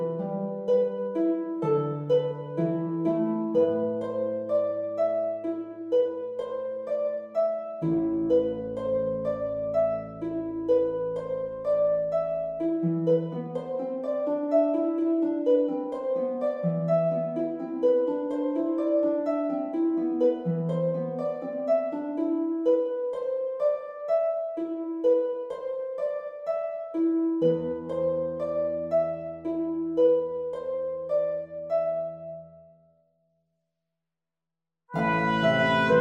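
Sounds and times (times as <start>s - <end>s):
harp: 0.0s - 33.0s, 34.9s - 35.9s
trumpet: 34.9s - 35.9s.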